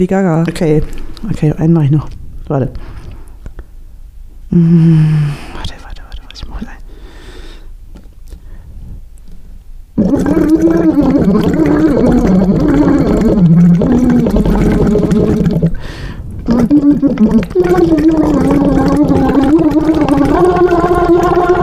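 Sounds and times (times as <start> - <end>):
speech: 0.0 - 3.0, 4.5 - 5.7, 10.3 - 12.4, 16.8 - 20.8
humming through a voice therapy bubble tube: 4.5 - 5.5, 10.0 - 21.6.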